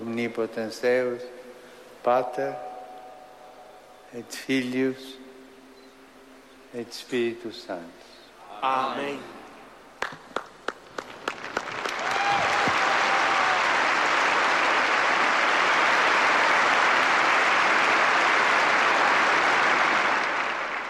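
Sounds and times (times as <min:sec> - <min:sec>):
speech: 0:00.2 - 0:01.4, 0:02.0 - 0:02.7, 0:04.1 - 0:05.2, 0:06.7 - 0:09.4
storm of applause greeting the Pope: 0:10.0 - 0:20.8.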